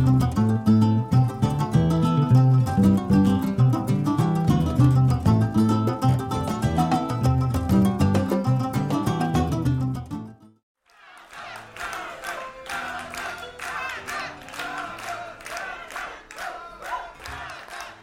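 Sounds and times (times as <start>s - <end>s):
music: 0.0s - 18.0s
big concert crowd cheering and shouting: 10.9s - 18.0s.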